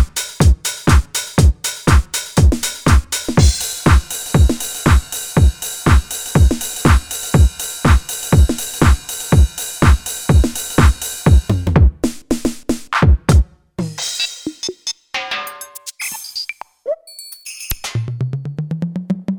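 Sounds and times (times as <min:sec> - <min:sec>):
house drum kit: 0:00.0 - 0:14.9.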